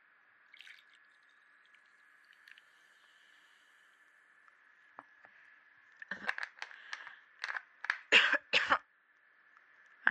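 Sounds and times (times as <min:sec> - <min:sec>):
coughing: 0:08.1 - 0:08.8.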